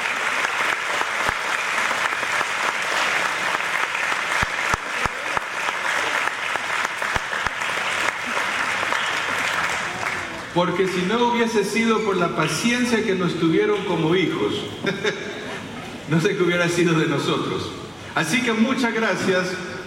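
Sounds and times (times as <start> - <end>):
audience applause: 0.0 - 11.1
speech: 10.6 - 15.3, 16.1 - 19.6.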